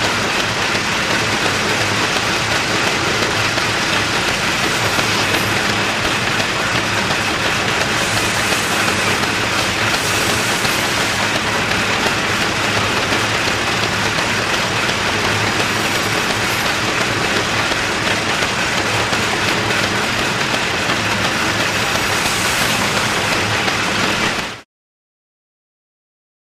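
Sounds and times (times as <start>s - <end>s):
factory background noise: 0.0s - 24.6s.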